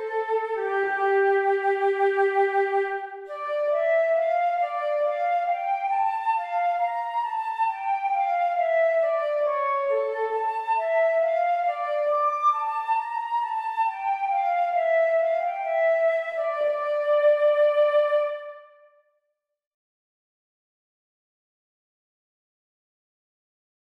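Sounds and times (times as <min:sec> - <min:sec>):
gavotte music: 0:00.0 - 0:19.0.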